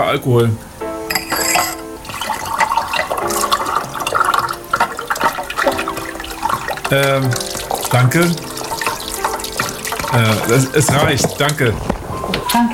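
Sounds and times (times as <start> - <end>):
speech: 0.1 - 0.7, 6.9 - 8.5, 10.1 - 11.9, 12.5 - 12.7
glass clink: 1.1 - 1.9
liqueur pouring into a glass: 1.1 - 11.7.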